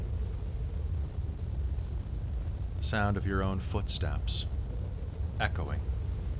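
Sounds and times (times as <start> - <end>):
snow cascading down a mountainside: 0.0 - 4.5
speech: 2.8 - 4.6, 5.4 - 5.9.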